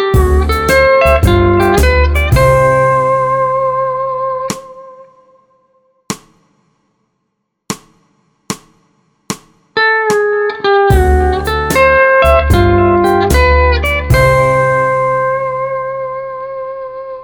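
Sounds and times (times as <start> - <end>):
musical vamp in C in four four: 0.1 - 4.8, 10.9 - 17.1.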